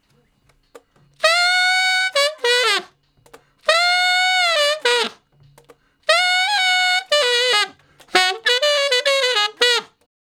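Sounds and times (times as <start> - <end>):
tenor saxophone playing straight R&B: 1.1 - 10.1.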